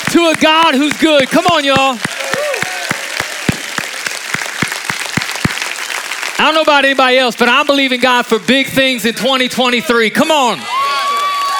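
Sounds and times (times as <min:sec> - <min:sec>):
audience clapping and shouting: 0:00.0 - 0:08.2, 0:10.4 - 0:11.5
speech: 0:00.1 - 0:02.2, 0:06.4 - 0:10.8.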